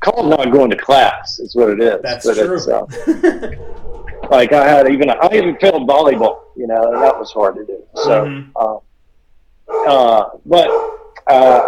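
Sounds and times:
speech: 0.1s - 8.9s, 9.7s - 11.6s
laughter: 2.0s - 3.8s
hungry dog barking loudly: 6.0s - 8.3s, 9.7s - 11.6s.

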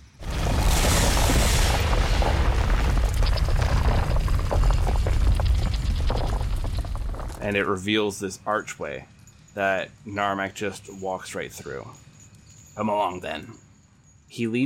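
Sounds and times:
heavy stone wall grinding apart: 0.2s - 7.6s
speech: 7.5s - 12.0s, 12.8s - 13.6s, 14.3s - 14.6s.

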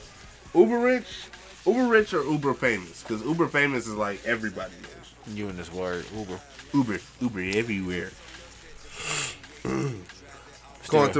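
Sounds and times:
speech: 0.5s - 8.3s, 9.0s - 10.1s, 10.9s - 11.1s
person sniffling into a microphone: 8.9s - 10.0s.

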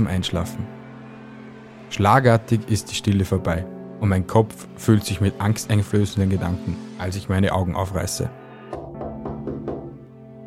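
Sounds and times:
speech: 0.0s - 0.8s, 1.9s - 8.4s
fist knocking on glass: 8.8s - 10.0s.

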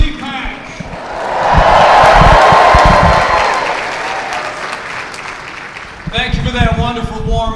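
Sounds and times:
crowd cheering and chanting: 0.8s - 6.1s.

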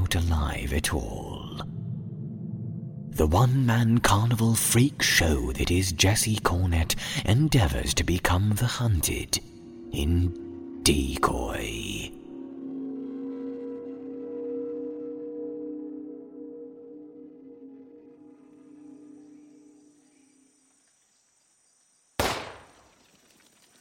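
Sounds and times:
low sustained drone: 0.0s - 20.6s
speech: 0.1s - 1.4s, 3.2s - 12.2s
hunter's gunshot at squirrels echoing through trees: 22.2s - 22.9s.

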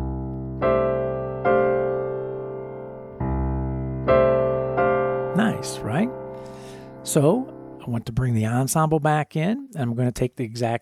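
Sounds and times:
chord voicings struck: 0.0s - 8.6s
speech: 5.6s - 6.2s, 7.1s - 10.8s.

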